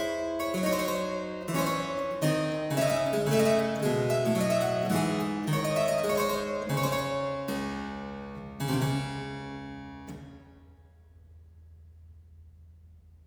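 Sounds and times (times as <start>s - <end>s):
harpsichord aria: 0.0s - 10.3s.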